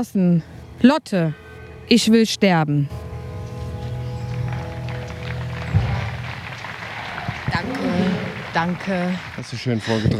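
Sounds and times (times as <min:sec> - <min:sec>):
speech: 0:00.0 - 0:03.0, 0:08.6 - 0:10.1
applause: 0:04.2 - 0:10.1.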